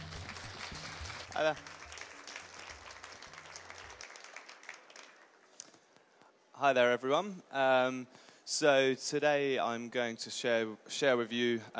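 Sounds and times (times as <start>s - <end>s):
audience clapping at a travel writers festival in Olympia: 0.0s - 6.0s
speech: 1.4s - 1.8s, 6.6s - 11.7s.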